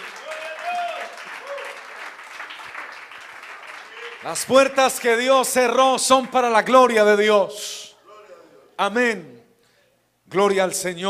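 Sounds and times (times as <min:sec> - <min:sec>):
audience applauding: 0:00.0 - 0:05.4
speech: 0:04.2 - 0:07.8, 0:08.8 - 0:09.4, 0:10.3 - 0:11.0.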